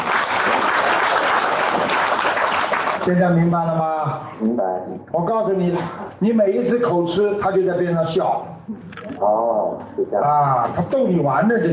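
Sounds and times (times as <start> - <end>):
applause: 0.0 - 3.2
speech: 3.1 - 11.7.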